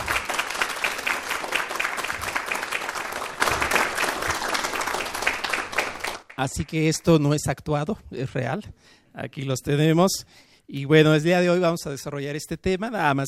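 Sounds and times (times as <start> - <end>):
audience applause in auditorium: 0.0 - 6.4
speech: 6.4 - 13.2.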